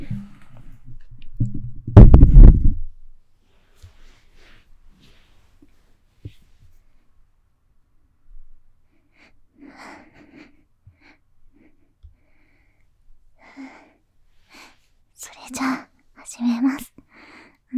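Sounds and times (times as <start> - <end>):
microphone being moved, handling noise: 0.0 - 3.0.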